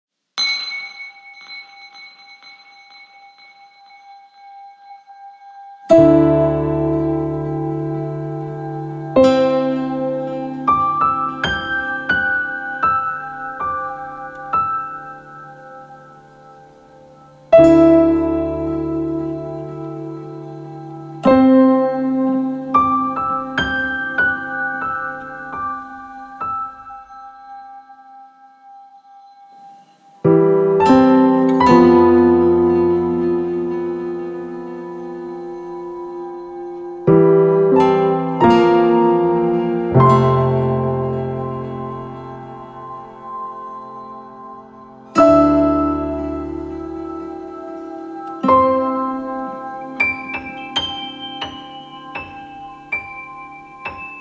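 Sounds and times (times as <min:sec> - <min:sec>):
gentle baby meditation music: 0:00.3 - 0:54.1.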